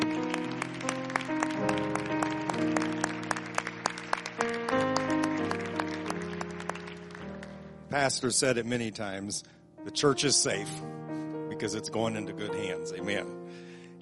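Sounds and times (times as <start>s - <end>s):
audience clapping: 0.0s - 7.7s
sustained organ chords: 0.0s - 14.0s
speech: 7.9s - 11.0s, 11.6s - 14.0s.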